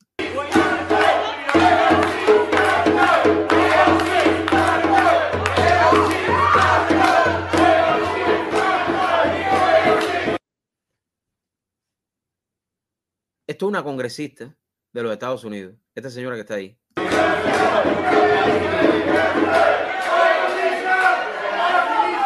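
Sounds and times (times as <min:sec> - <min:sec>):
crowd shouting and jeering at a U.S. congresswoman during a meeting: 0:00.2 - 0:10.4, 0:17.0 - 0:22.2
speech: 0:13.6 - 0:19.8.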